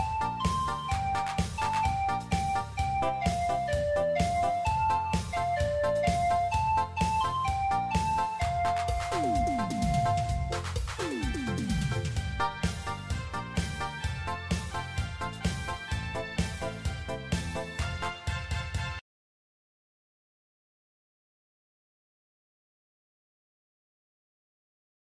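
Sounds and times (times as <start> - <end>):
music beat: 0.0 - 18.6.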